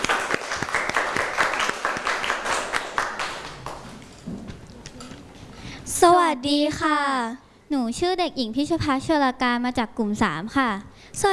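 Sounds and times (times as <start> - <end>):
applause for presenting group: 0.0 - 4.0
speech: 6.4 - 11.3.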